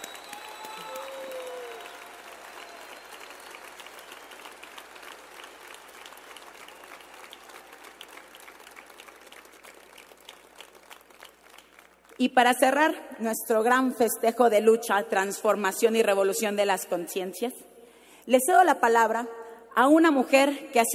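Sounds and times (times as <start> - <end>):
crowd whistles and cheers: 0.0 - 8.3
large crowd applause: 0.0 - 12.2
speech: 12.2 - 17.7, 18.3 - 20.9.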